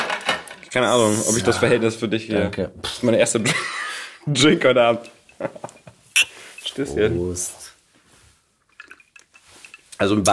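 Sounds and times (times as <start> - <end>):
speech: 0.7 - 5.8, 6.8 - 7.7, 10.0 - 10.3
laughter: 3.4 - 4.2
soft shuffling: 4.8 - 10.3
ice cubes clacking in a glass: 8.7 - 9.9.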